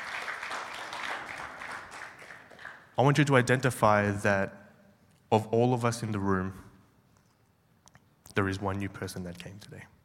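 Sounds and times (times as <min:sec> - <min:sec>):
audience clapping: 0:00.0 - 0:03.0
speech: 0:03.0 - 0:04.6, 0:05.3 - 0:06.7, 0:08.4 - 0:10.0.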